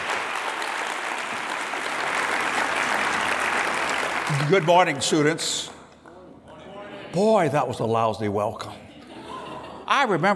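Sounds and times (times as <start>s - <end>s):
audience applause: 0.0s - 6.2s
speech: 4.3s - 5.8s, 7.1s - 8.8s, 9.9s - 10.3s
laughter: 8.8s - 10.3s.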